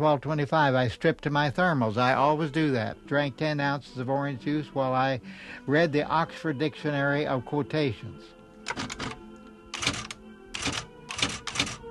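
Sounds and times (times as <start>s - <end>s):
speech: 0.0s - 9.1s
typing a diary on 11 by 14 inch paper: 8.7s - 9.2s, 9.8s - 11.8s.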